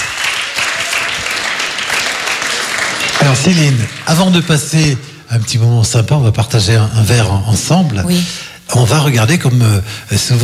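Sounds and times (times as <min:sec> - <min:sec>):
audience applause: 0:00.0 - 0:05.0
speech: 0:03.2 - 0:10.4.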